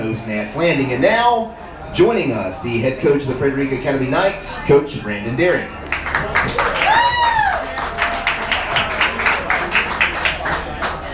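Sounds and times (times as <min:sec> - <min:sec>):
speech: 0:00.1 - 0:05.8
people clapping: 0:05.8 - 0:11.1.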